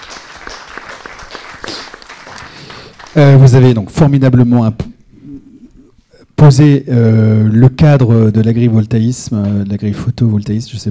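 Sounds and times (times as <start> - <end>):
audience applause: 0.0 - 3.8
speech: 3.2 - 4.8, 6.4 - 10.8.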